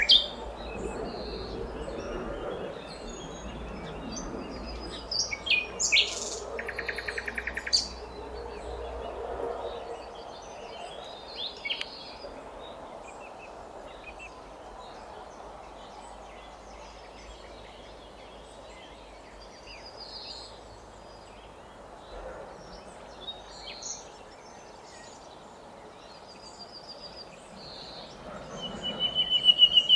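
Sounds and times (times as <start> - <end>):
Common nightingale singing: 0.0 - 29.9.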